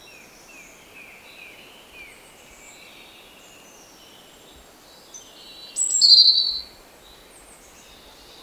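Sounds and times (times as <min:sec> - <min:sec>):
European robin Erithacus rubecula singing: 0:00.0 - 0:08.4.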